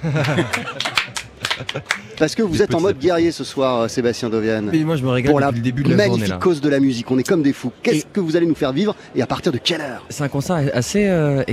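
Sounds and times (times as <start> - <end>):
audience applause: 0.0 - 2.3
laughter: 0.0 - 3.0
speech: 0.0 - 11.5.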